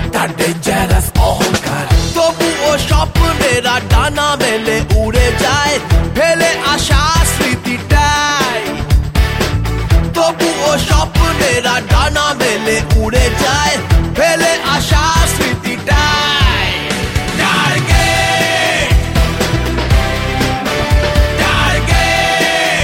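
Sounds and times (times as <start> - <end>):
title song ringtone: 0.2 - 22.8.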